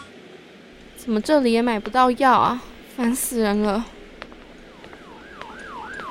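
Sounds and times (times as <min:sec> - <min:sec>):
speech: 0:01.0 - 0:04.0
police car siren wailing: 0:04.7 - 0:06.0.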